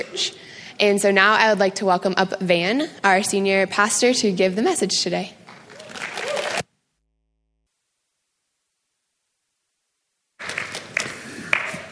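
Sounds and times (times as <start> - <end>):
speech: 0.1 - 5.4
audience clapping: 5.4 - 6.7, 10.4 - 11.9.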